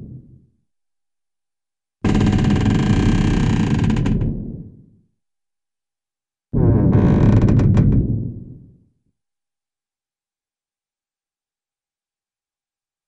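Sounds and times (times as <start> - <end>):
slow wood and metallic creaks: 2.1 - 4.3, 6.9 - 8.0.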